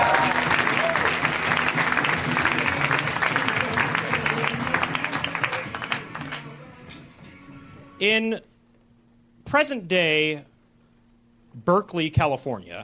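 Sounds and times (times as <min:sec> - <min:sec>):
live audience applause for a comedian: 0:00.0 - 0:06.4
speech: 0:08.0 - 0:08.5, 0:09.5 - 0:10.5, 0:11.6 - 0:12.8.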